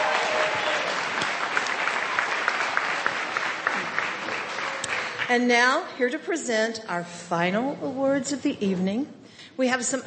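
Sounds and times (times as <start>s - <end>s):
audience applause: 0.0s - 5.3s
speech: 5.3s - 10.0s.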